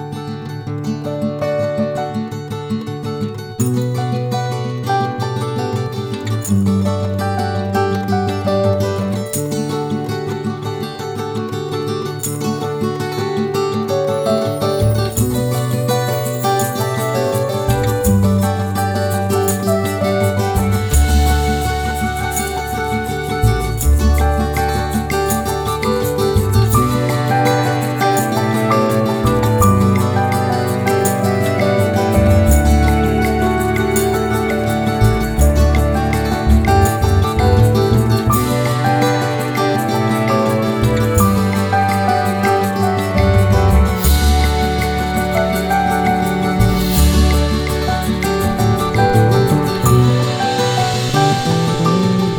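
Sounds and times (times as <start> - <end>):
sad country ballad: 0.2 - 52.3.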